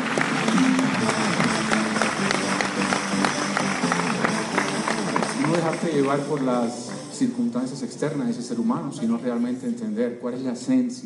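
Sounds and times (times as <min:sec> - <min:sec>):
audience applause: 0:00.0 - 0:07.1
speech: 0:06.0 - 0:11.0.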